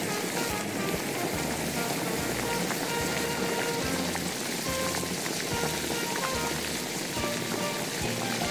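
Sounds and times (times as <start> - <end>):
garlic sprouts stir-frying in a wok: 0.0 - 8.4.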